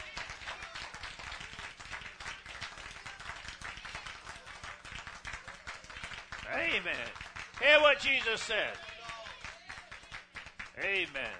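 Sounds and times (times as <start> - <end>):
audience clapping hands: 0.0 - 11.3
speech: 6.8 - 8.9, 10.8 - 11.3.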